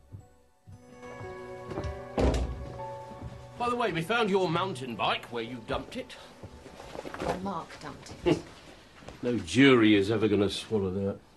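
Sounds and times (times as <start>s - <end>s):
door opening: 1.8s - 2.8s
speech: 3.6s - 6.3s, 7.2s - 8.5s, 9.2s - 11.3s.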